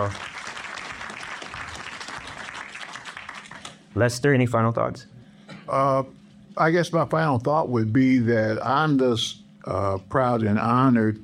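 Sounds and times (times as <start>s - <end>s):
speech: 0.0s - 0.3s, 4.0s - 5.1s, 5.7s - 11.2s
audience applause: 0.0s - 3.9s.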